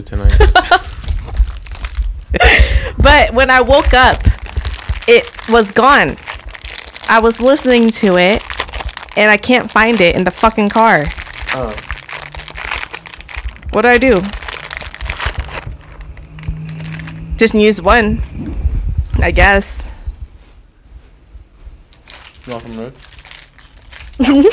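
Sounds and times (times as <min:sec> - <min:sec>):
speech: 0:00.0 - 0:00.9, 0:02.3 - 0:04.3, 0:05.1 - 0:06.3, 0:07.1 - 0:08.5, 0:09.2 - 0:11.9, 0:13.8 - 0:14.4, 0:17.4 - 0:18.5, 0:19.2 - 0:19.9, 0:22.5 - 0:23.0, 0:24.2 - 0:24.5
plastic or paper crinkling: 0:00.4 - 0:02.3, 0:03.6 - 0:17.4, 0:21.9 - 0:24.5.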